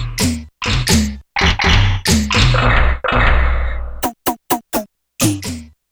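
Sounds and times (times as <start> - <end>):
gated sound effect: 0.2 - 5.4.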